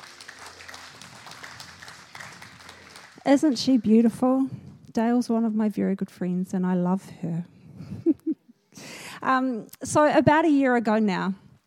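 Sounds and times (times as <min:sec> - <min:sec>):
audience clapping: 0:00.0 - 0:04.3
speech: 0:03.2 - 0:07.6, 0:09.2 - 0:11.4.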